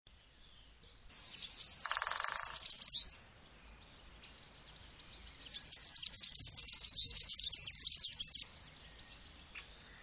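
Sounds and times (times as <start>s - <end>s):
bird twittering chatter: 1.1s - 3.2s, 5.0s - 8.5s.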